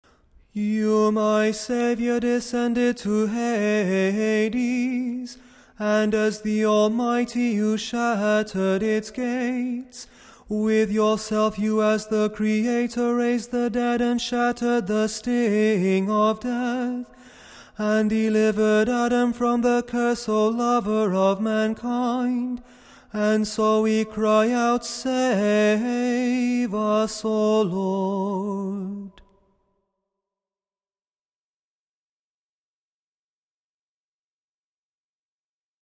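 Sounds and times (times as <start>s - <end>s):
tone six kontakion chant: 0.6s - 17.2s, 17.8s - 29.2s.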